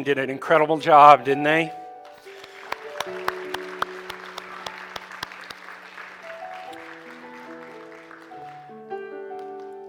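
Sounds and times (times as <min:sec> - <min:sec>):
speech: 0:00.0 - 0:01.8
church audience applauding: 0:02.1 - 0:09.8.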